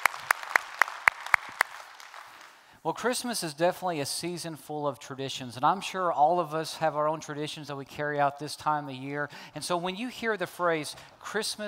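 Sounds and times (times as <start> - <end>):
hands clapping at a church service: 0.0 - 2.6
speech: 2.8 - 11.6.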